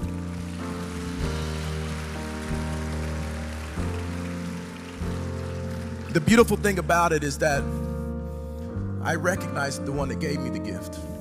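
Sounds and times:
audience clapping: 0:00.0 - 0:07.5
speech: 0:06.2 - 0:07.9, 0:09.0 - 0:11.2.

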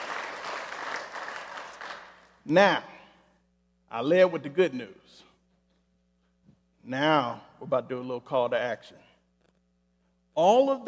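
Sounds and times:
audience round of applause: 0:00.0 - 0:02.2
speech: 0:02.4 - 0:02.9, 0:03.9 - 0:05.3, 0:06.8 - 0:09.0, 0:10.4 - 0:10.8.

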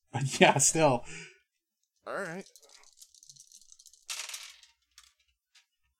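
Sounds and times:
speech: 0:00.2 - 0:01.3, 0:02.1 - 0:02.7
dice being rolled: 0:02.3 - 0:05.7.

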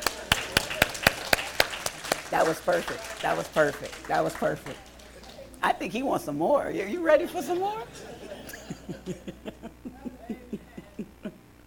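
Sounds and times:
laughter: 0:00.0 - 0:01.6, 0:07.4 - 0:11.5
audience clapping: 0:00.0 - 0:05.8, 0:07.4 - 0:07.8
speech: 0:02.3 - 0:04.9, 0:05.6 - 0:08.4, 0:09.0 - 0:10.0.

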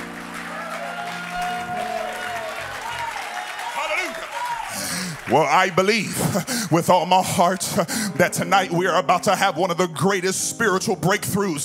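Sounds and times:
audience clapping hands: 0:00.0 - 0:08.4
speech: 0:05.3 - 0:11.6.

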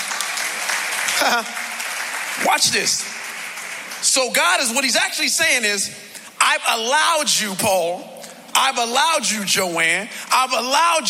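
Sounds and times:
audience clapping: 0:00.0 - 0:05.2
speech: 0:01.2 - 0:01.6, 0:02.4 - 0:03.2, 0:04.1 - 0:11.0.

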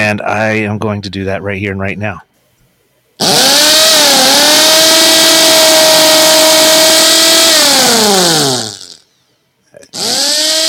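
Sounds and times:
speech: 0:00.1 - 0:02.3, 0:03.2 - 0:03.7
old brushed electric drill motor whine: 0:03.2 - 0:09.0, 0:10.0 - 0:10.6.

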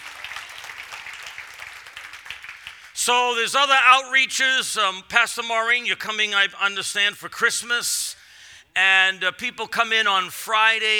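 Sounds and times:
audience hand clapping: 0:00.0 - 0:03.4
speech: 0:03.1 - 0:08.2, 0:08.8 - 0:10.9.

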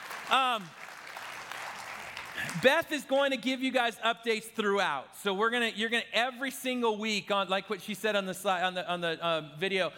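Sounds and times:
audience clapping: 0:00.0 - 0:03.0
speech: 0:00.3 - 0:00.8, 0:02.4 - 0:09.9.

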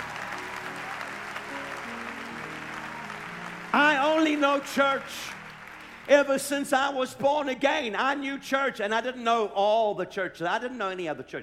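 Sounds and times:
audience clapping: 0:00.0 - 0:07.2
speech: 0:04.4 - 0:05.4, 0:06.1 - 0:11.4.

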